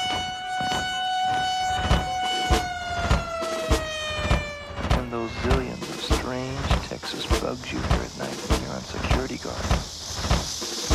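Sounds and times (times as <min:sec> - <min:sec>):
military base noon siren: 0:00.0 - 0:07.0
speech: 0:07.0 - 0:09.9.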